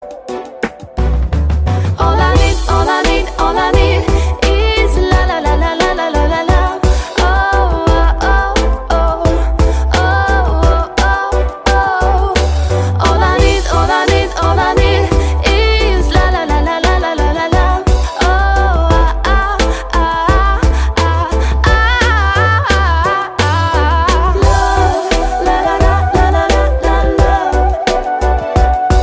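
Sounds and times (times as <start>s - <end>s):
RnB music: 0.0s - 29.0s.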